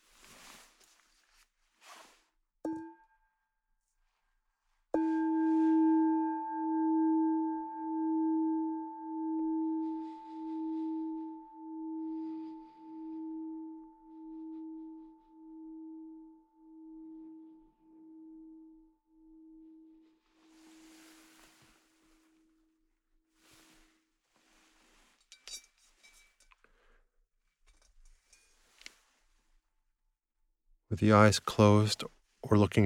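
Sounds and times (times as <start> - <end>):
soft rustles: 0.0 - 2.4, 20.2 - 22.6, 23.4 - 26.8, 27.6 - 29.7
meditation bell ringing: 5.0 - 21.4
speech: 30.9 - 32.8.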